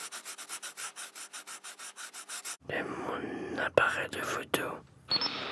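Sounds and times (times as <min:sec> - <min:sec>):
pencils scratching on paper sheets: 0:00.0 - 0:02.6
speech: 0:02.7 - 0:05.0.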